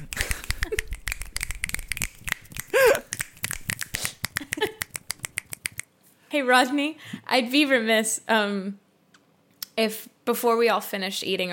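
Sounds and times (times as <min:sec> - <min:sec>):
many people snapping their fingers loudly: 0:00.0 - 0:05.9
speech: 0:06.3 - 0:08.8, 0:09.8 - 0:11.5.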